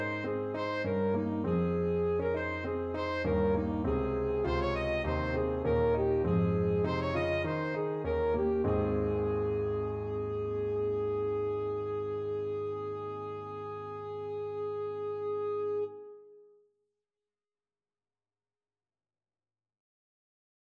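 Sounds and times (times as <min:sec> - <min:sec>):
alto saxophone: 0:00.0 - 0:16.3.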